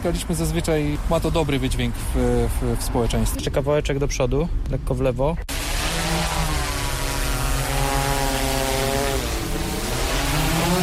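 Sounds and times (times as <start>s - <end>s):
speech: 0.0s - 5.5s
drone propellers whining while landing: 5.5s - 10.8s.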